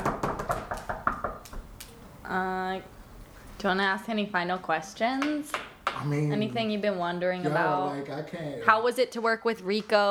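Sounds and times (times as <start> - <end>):
knocking on marble: 0.0 - 1.7
speech: 3.6 - 10.0.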